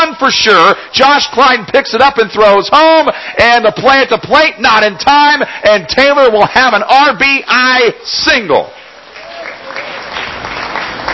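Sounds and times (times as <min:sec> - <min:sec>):
speech: 0:00.2 - 0:08.8
baseball crowd clapping and cheering after an RBI single: 0:08.7 - 0:11.1.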